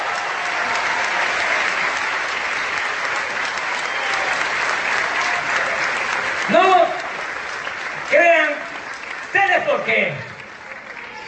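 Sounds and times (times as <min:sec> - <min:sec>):
audience applause: 0:00.0 - 0:11.2.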